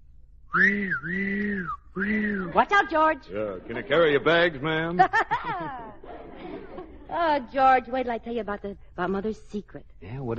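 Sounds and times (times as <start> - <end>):
steam train whistle blowing: 0.5 - 3.0
speech: 0.6 - 6.4, 7.1 - 10.3
laughter: 2.0 - 7.8.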